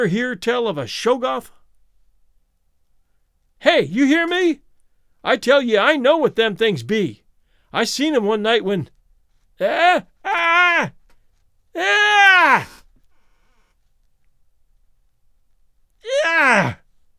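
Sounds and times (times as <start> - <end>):
speech: 0.0 - 1.6, 3.6 - 4.6, 5.2 - 9.0, 9.6 - 11.0, 11.8 - 12.8, 16.1 - 16.8
old man shrieking: 9.6 - 10.9, 11.8 - 12.8, 16.0 - 16.8.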